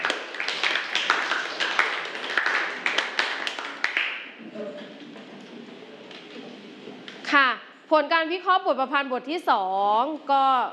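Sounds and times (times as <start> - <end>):
people clapping for group five: 0.0 - 4.4
speech: 7.9 - 10.7.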